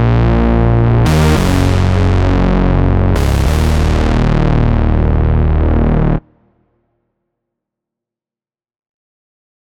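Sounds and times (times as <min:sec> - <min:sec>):
bass synth with bass pedal preset: 0:00.0 - 0:06.4.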